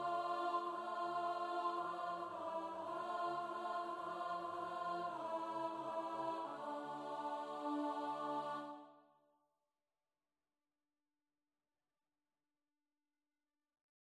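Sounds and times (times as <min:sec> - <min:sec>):
alto study: 0:00.0 - 0:08.9.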